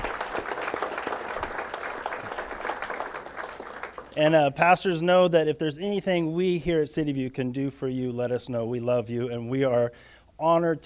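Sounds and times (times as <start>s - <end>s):
audience applause for KPRZ: 0.0s - 4.2s
speech: 4.2s - 10.8s.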